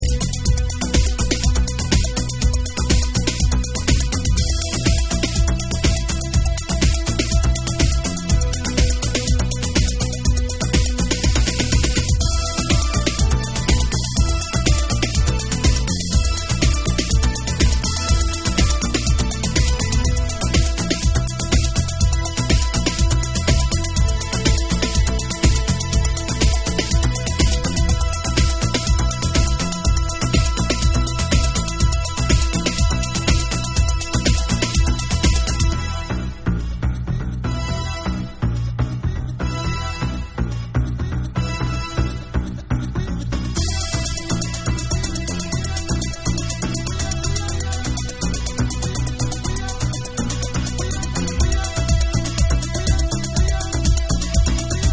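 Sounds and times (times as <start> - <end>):
dub bass: 0.0 - 54.9.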